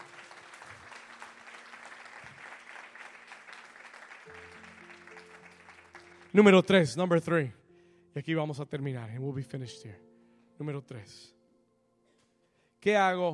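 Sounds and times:
audience applause: 0.0 - 6.7
speech: 6.3 - 7.6, 8.2 - 11.4, 12.8 - 13.3.

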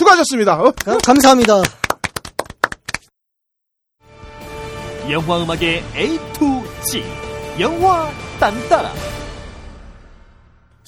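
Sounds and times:
speech: 0.1 - 1.8, 5.1 - 9.2
hand clapping: 0.8 - 3.1
steady music: 4.3 - 9.9.

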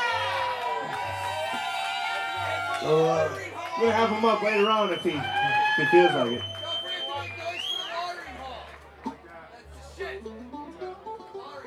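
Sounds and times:
live audience cheering: 0.0 - 9.2
speech: 2.8 - 6.6.

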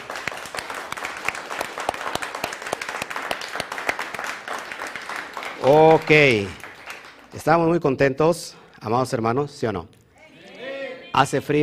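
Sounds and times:
audience applause: 0.0 - 7.3
speech: 5.6 - 6.6, 7.3 - 10.0, 11.2 - 11.6.

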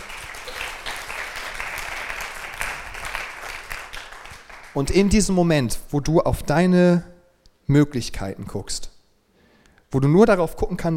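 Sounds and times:
applause: 0.0 - 5.0
speech: 4.8 - 7.1, 7.7 - 8.9, 9.9 - 10.9.

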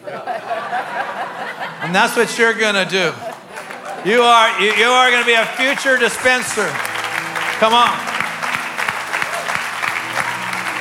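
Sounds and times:
laughter: 0.0 - 10.7
speech: 1.9 - 3.3, 4.0 - 6.9, 7.6 - 8.1
audience clapping in time: 3.2 - 10.7.

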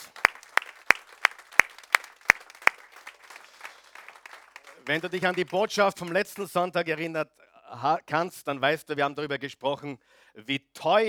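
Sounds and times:
audience applause: 0.0 - 6.5
speech: 4.8 - 11.0.

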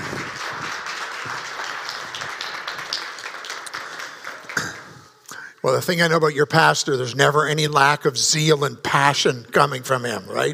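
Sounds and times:
audience clapping welcoming a speaker onto a church stage: 0.0 - 5.4
speech: 5.6 - 10.5.

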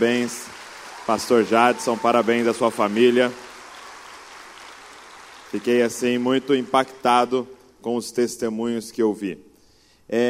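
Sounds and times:
speech: 0.0 - 3.4, 5.5 - 9.5, 10.1 - 10.2
audience applause: 0.0 - 7.3.

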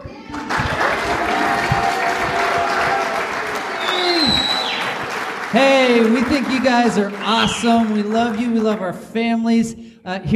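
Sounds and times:
cheering for kids: 0.1 - 8.6
applause for kids: 0.3 - 9.1
speech: 5.5 - 10.3.

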